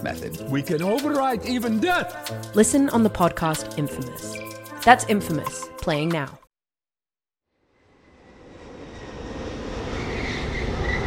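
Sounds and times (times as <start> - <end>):
speech: 0.0 - 6.4
airplane engine roar in flight: 7.9 - 11.0.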